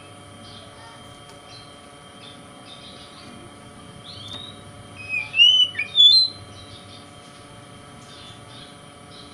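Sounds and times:
Oriental magpie-robin whistles: 0:04.2 - 0:06.4.

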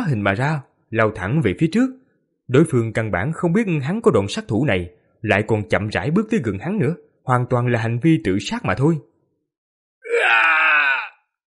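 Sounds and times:
speech: 0:00.1 - 0:09.1
man's agonized scream of pain: 0:10.0 - 0:11.3.

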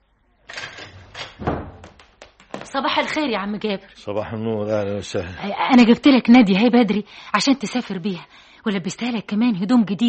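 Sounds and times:
door rattling and clunking as it is opened in a dramatized scene: 0:01.1 - 0:02.0
heavy thud: 0:01.4 - 0:02.0
speech: 0:02.8 - 0:10.0.

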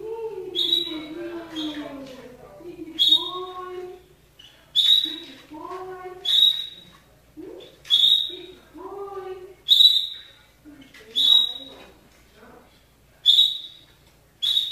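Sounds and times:
canary song with fast rolling trill: 0:00.5 - 0:02.0, 0:03.0 - 0:05.4, 0:06.1 - 0:07.0, 0:07.6 - 0:08.7, 0:09.6 - 0:10.5, 0:11.1 - 0:11.8, 0:13.2 - 0:14.7.

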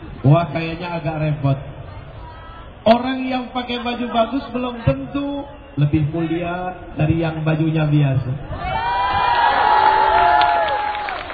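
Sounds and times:
speech: 0:00.2 - 0:01.7, 0:02.8 - 0:08.8
audience at a sermon cheering and whooping: 0:08.5 - 0:11.3
audience at a sermon clapping: 0:09.8 - 0:11.3.

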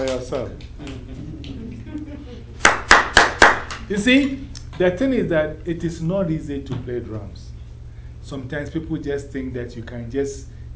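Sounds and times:
hand claps of people in a drum lesson: 0:00.0 - 0:01.6, 0:02.6 - 0:03.9
speech: 0:00.1 - 0:01.6, 0:03.9 - 0:07.5, 0:08.3 - 0:10.7.

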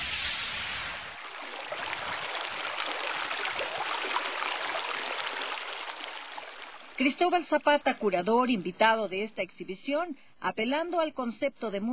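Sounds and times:
flowing water: 0:00.0 - 0:09.3
speech: 0:07.0 - 0:11.9.

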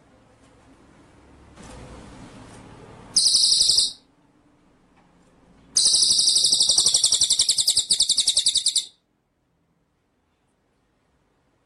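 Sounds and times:
white-rumped shama rattling trill: 0:03.2 - 0:04.0, 0:05.8 - 0:09.0.

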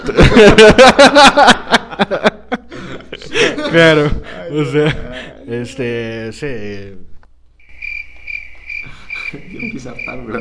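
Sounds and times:
speech: 0:00.0 - 0:02.4, 0:03.2 - 0:07.1, 0:09.3 - 0:10.3
laughter: 0:00.0 - 0:05.4, 0:08.9 - 0:10.3
crickets chirping: 0:07.6 - 0:10.3.

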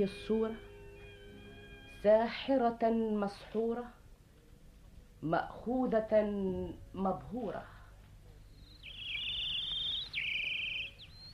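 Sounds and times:
speech: 0:00.0 - 0:00.7, 0:02.0 - 0:04.0, 0:05.2 - 0:07.8
birds singing: 0:08.4 - 0:11.3.

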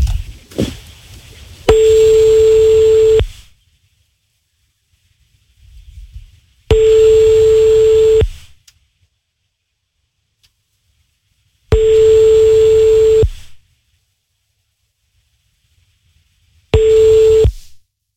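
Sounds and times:
telephone ringing tone during a prank call: 0:01.7 - 0:03.3, 0:06.7 - 0:08.3, 0:11.7 - 0:13.3, 0:16.8 - 0:17.5.

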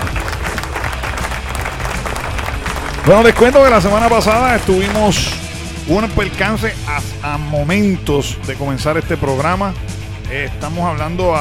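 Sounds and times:
crowd applause in a studio: 0:00.0 - 0:05.5
speech: 0:03.0 - 0:11.4.

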